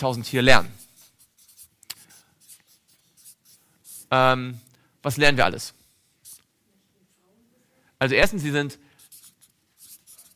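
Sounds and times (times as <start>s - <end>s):
speech: 0.0s - 0.8s, 4.1s - 5.8s, 8.0s - 8.8s
pen or pencil writing on paper: 0.6s - 4.1s, 6.2s - 6.4s, 9.0s - 10.3s.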